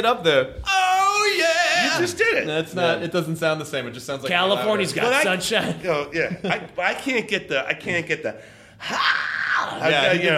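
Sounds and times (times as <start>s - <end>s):
speech: 0.0s - 10.3s
voice imitating a rock singer's scream: 0.6s - 2.2s, 8.8s - 10.1s.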